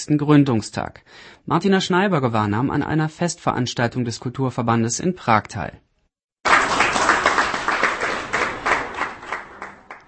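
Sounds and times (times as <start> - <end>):
speech: 0.0 - 5.9
audience applause: 6.4 - 10.0.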